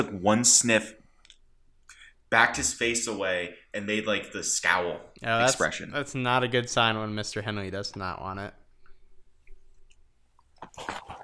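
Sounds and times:
speech: 0.0 - 1.0, 2.3 - 8.6, 10.7 - 11.2
person chewing cinnamon-flavoured cereal: 9.4 - 11.2.

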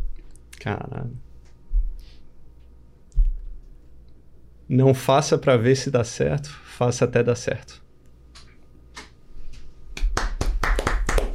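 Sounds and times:
speech: 0.6 - 1.3, 4.7 - 7.8
small group clapping: 10.0 - 11.3.

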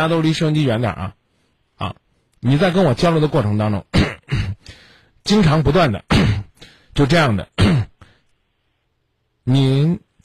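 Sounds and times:
speech: 0.0 - 1.2, 1.8 - 4.2, 5.3 - 6.4, 7.0 - 7.9, 9.5 - 10.2
person clearing throat into phone: 3.9 - 4.6, 6.0 - 6.6, 7.5 - 8.1.

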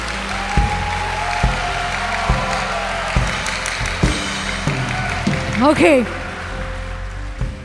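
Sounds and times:
audience applause: 0.0 - 7.6
speech: 5.6 - 6.2.

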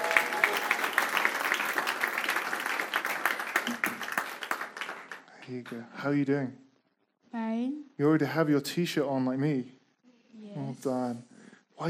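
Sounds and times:
audience applause and cheering: 0.0 - 5.5
speech: 5.5 - 6.6, 7.3 - 9.8, 10.6 - 11.8.

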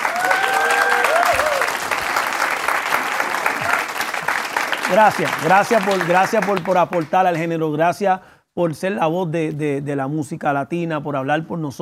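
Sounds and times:
audience applause: 0.0 - 7.3
speech: 4.9 - 11.8.

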